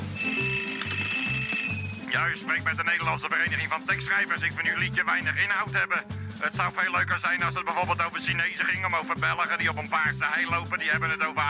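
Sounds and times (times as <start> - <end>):
telephone ringing with electronic trill: 0.0 - 2.2
speech: 2.1 - 11.4.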